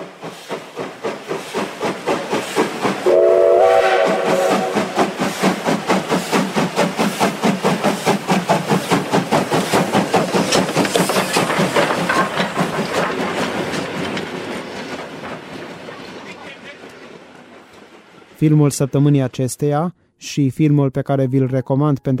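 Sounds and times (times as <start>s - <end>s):
locomotive steam hissing: 0.0s - 13.9s
locomotive bound for the North Pole chugging: 0.0s - 19.9s
train whistle: 3.0s - 5.2s
speech: 18.4s - 22.1s.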